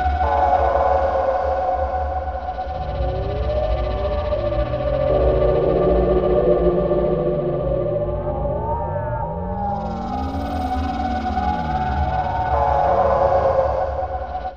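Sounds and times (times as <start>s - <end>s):
alien ambience: 0.2s - 14.5s.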